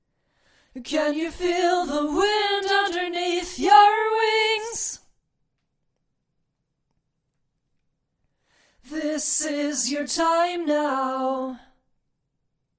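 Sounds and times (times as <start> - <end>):
a cappella singing: 0.8 - 5.1, 8.8 - 11.8.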